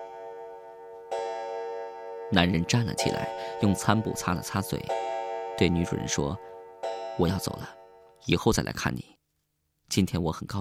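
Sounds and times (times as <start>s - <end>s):
clock striking midnight: 0.0s - 8.2s
speech: 2.3s - 6.5s, 7.2s - 9.2s, 9.9s - 10.5s.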